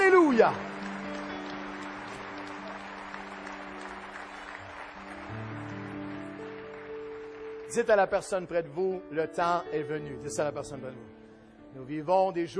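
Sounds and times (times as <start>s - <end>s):
audience applauding: 0.0s - 8.5s
speech: 0.4s - 0.7s, 7.7s - 12.5s.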